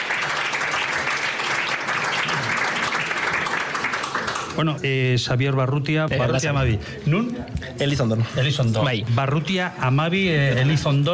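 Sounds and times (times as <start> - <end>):
audience applause: 0.0 - 4.6
speech: 4.6 - 11.1.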